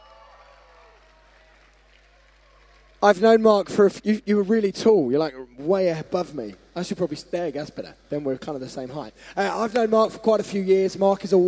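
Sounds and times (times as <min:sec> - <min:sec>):
audience applause: 0:00.0 - 0:03.6
speech: 0:03.0 - 0:11.4.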